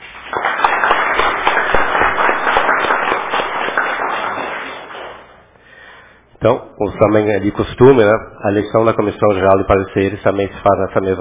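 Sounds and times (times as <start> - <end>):
round of applause: 0.0 - 5.5
speech: 6.4 - 11.2.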